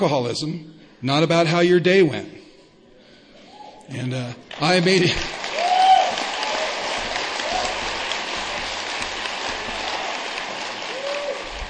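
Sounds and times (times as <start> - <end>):
speech: 0.0 - 2.4, 3.9 - 5.4
audience clapping: 4.4 - 11.6.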